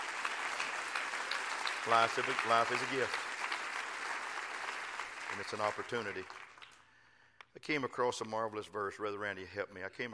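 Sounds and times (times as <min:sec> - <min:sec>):
audience clapping hands: 0:00.0 - 0:07.0
speech: 0:01.8 - 0:03.3, 0:05.4 - 0:06.4, 0:07.6 - 0:10.1.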